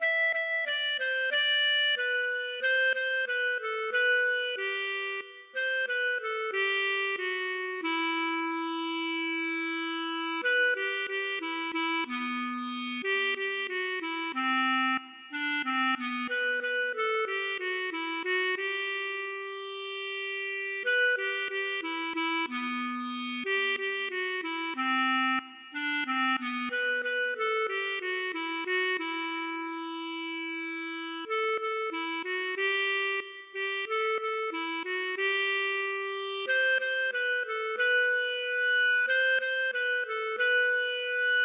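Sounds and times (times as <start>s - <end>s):
klezmer music: 0.0s - 41.4s.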